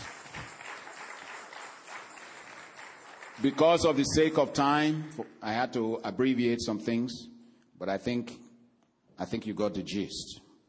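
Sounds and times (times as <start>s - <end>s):
crowd clapping: 0.0s - 4.4s
speech: 3.4s - 8.4s, 9.2s - 10.4s.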